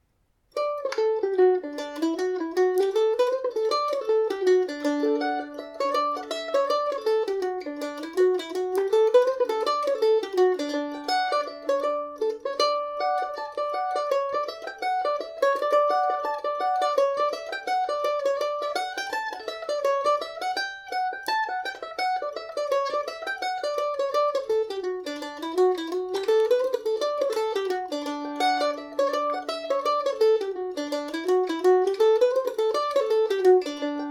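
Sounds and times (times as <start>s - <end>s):
mandolin in D major: 0.0s - 34.0s.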